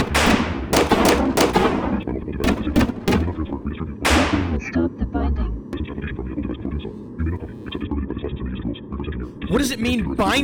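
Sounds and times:
gunshots: 0.0 - 4.6
dense rumbling background: 0.0 - 10.2
speech: 9.6 - 10.4.

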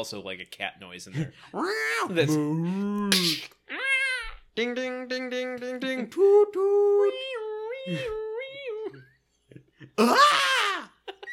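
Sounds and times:
speech: 0.0 - 3.8, 4.6 - 8.2, 10.0 - 10.5
person vocally imitating a Wilhelm scream: 1.6 - 4.9, 6.8 - 8.9, 10.0 - 11.0.

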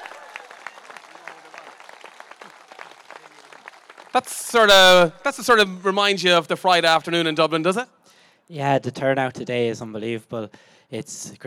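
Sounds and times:
voices and cheers: 0.0 - 5.1
crowd applause: 0.0 - 5.5
speech: 4.2 - 11.4.

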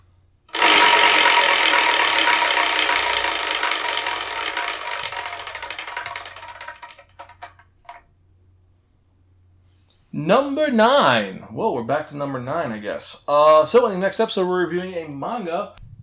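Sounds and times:
prize wheel being spun and clicking: 0.5 - 8.0
speech: 10.2 - 16.0.

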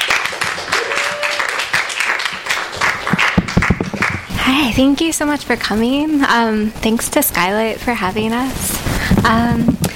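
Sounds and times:
audience applause: 0.0 - 4.3
speech: 4.5 - 9.9.

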